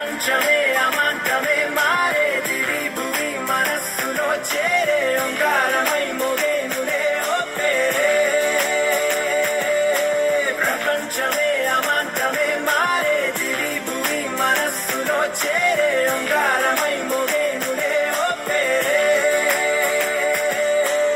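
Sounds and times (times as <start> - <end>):
vocals: 0.0 - 21.1.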